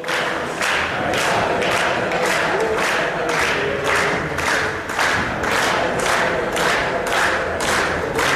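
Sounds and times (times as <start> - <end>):
large crowd chanting a football cheer: 0.0 - 8.3
rhythmic claps or stomps: 0.0 - 8.3.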